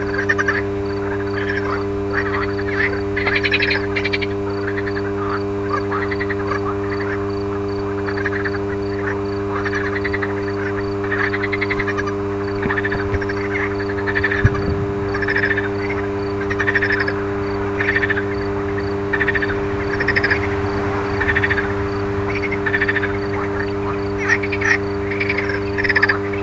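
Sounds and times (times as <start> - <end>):
frogs croaking: 0.0 - 26.4
mains hum: 0.0 - 26.4
low thumps: 14.1 - 15.6, 18.2 - 25.2.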